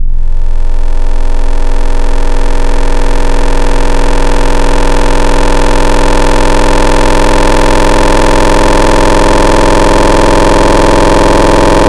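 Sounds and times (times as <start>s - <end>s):
Virus FM wavetable synth tone morphing: 0.0s - 11.8s.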